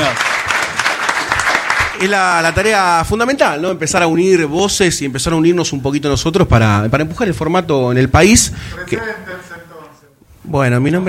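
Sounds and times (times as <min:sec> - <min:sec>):
audience applause: 0:00.0 - 0:02.6
speech: 0:02.0 - 0:09.6, 0:10.4 - 0:11.0.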